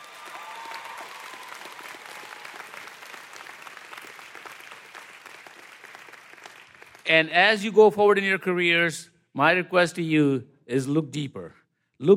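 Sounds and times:
audience applause: 0.0 - 7.1
speech: 7.1 - 12.1.

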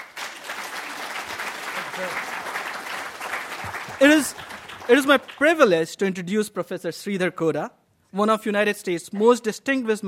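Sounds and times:
audience applause: 0.0 - 5.5
speech: 2.0 - 2.4, 4.0 - 10.0.

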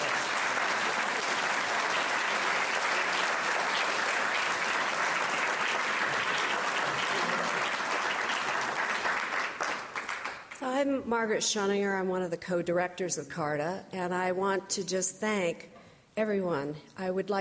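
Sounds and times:
audience applause: 0.0 - 10.6
speech: 10.8 - 17.3.

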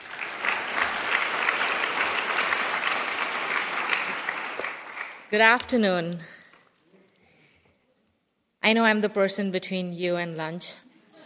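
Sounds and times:
audience applauding to welcome a speaker: 0.0 - 5.4
speech: 5.3 - 6.3, 8.7 - 10.8.

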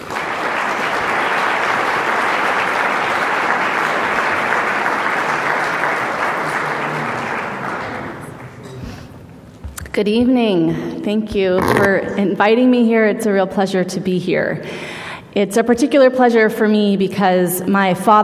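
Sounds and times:
audience applause welcoming a speaker at an evening talk: 0.0 - 8.7
speech: 10.0 - 18.2.

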